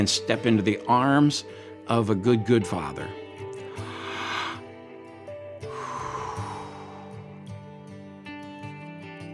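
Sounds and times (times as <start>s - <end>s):
speech: 0.0s - 3.2s
music: 0.0s - 9.3s
deep breaths: 3.6s - 7.7s.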